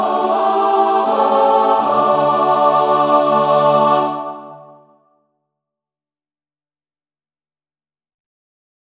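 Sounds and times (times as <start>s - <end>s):
three-part mixed choir singing: 0.0s - 5.0s.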